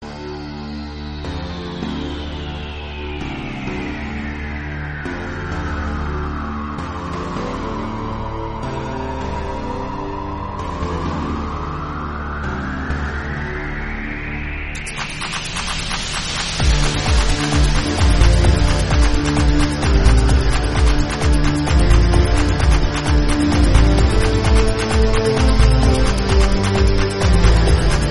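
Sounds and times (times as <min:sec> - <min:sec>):
Telugu background music: 0:00.0 - 0:28.0.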